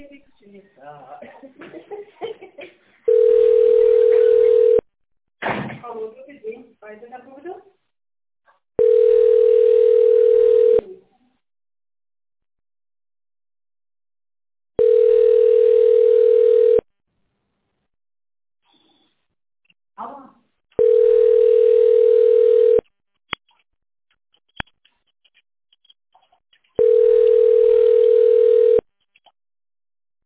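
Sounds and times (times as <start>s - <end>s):
people talking and chuckling on the telephone line: 1.2s - 2.9s
telephone line beeps while a business call is transferred: 3.1s - 4.8s, 8.8s - 10.8s, 14.8s - 16.9s, 20.8s - 22.8s, 26.8s - 28.8s.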